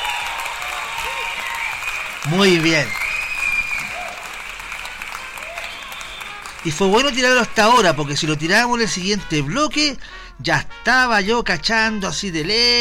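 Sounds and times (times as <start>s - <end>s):
applause: 0.0s - 9.1s
speech: 2.2s - 3.0s, 6.6s - 12.7s.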